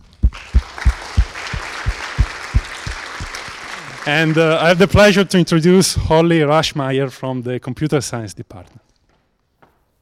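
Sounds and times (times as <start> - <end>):
round of applause: 0.2 - 5.2
speech: 4.0 - 8.8.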